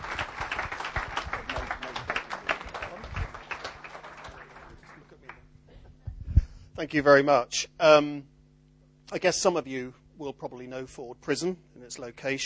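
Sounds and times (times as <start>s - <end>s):
audience clapping in welcome: 0.0s - 5.5s
speech: 6.8s - 8.3s, 9.1s - 12.4s.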